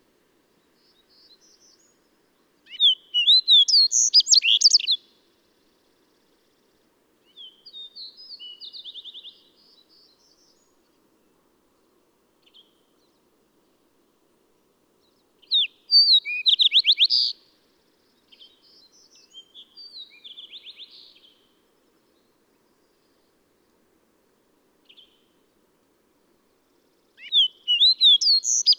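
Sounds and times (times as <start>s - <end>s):
bird song: 0.6s - 11.0s, 15.0s - 23.4s, 24.8s - 25.4s, 26.8s - 28.7s.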